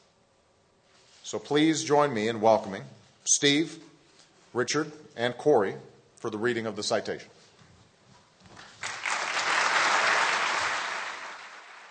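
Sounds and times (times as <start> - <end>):
speech: 1.3 - 3.9, 4.5 - 7.4
audience applause at ceremony: 8.8 - 11.8.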